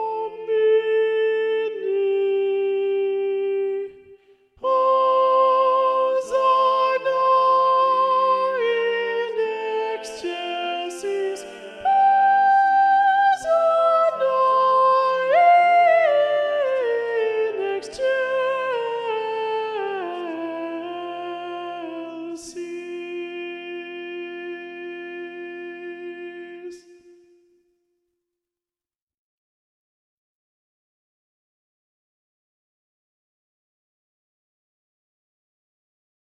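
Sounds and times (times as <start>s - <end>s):
soprano singing: 0.0s - 27.2s.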